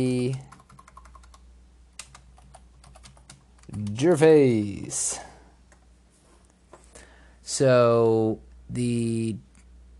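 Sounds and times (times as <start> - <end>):
speech: 0.0 - 0.5, 3.7 - 5.3, 7.5 - 9.9
typing on a computer keyboard: 0.2 - 1.4, 2.0 - 4.0.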